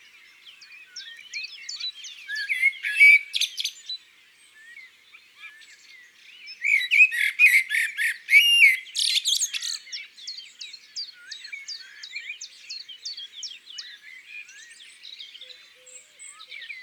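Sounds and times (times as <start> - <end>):
birdsong in the countryside: 0.0 - 16.8
magpie calling in the countryside: 6.6 - 9.5.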